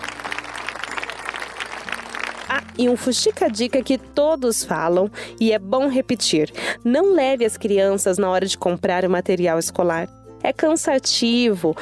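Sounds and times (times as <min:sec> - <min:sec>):
small crowd clapping: 0:00.0 - 0:03.8
speech: 0:02.5 - 0:11.8.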